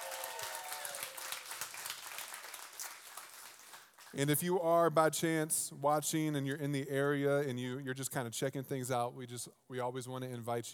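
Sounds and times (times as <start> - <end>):
in-person audience shouting: 0.0 - 1.2
in-person audience clapping: 0.0 - 4.4
speech: 4.1 - 10.7.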